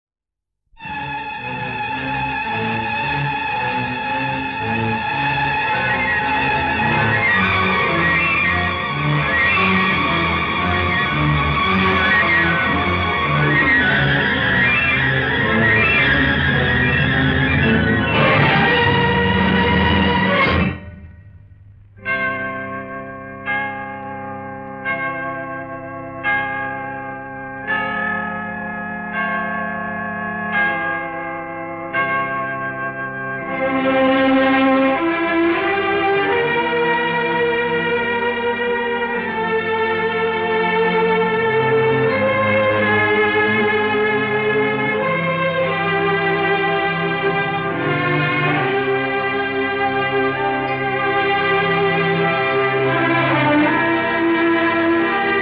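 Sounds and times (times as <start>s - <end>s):
instrumental music: 0.7s - 31.9s, 33.2s - 55.4s.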